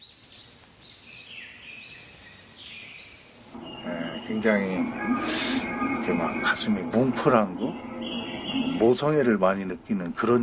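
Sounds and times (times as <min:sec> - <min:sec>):
five nestlings cheeping as they beg: 0:03.4 - 0:09.2
speech: 0:04.3 - 0:08.0, 0:08.8 - 0:10.4.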